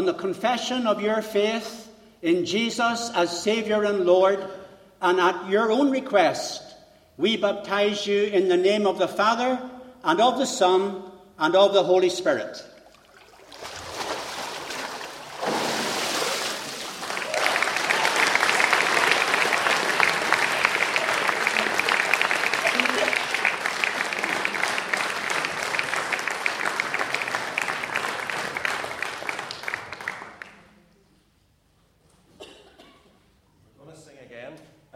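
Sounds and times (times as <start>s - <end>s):
speech: 0.0s - 12.7s
audience applause after a baptism: 16.1s - 30.6s.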